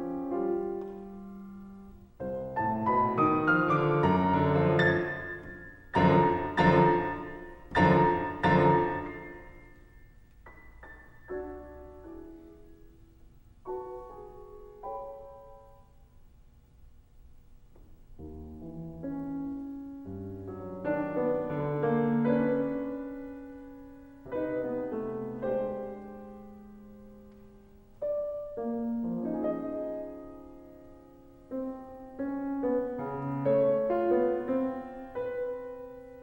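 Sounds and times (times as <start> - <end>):
piano prelude: 0.0 - 16.2, 17.7 - 36.2.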